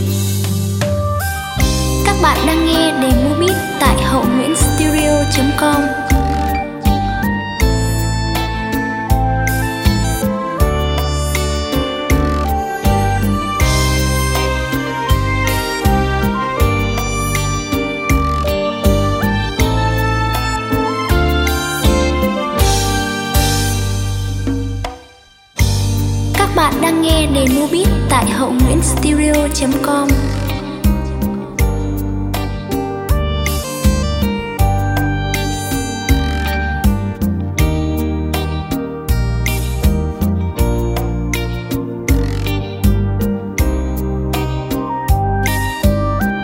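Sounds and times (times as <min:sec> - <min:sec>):
music beat playback: 0:00.2 - 0:46.4.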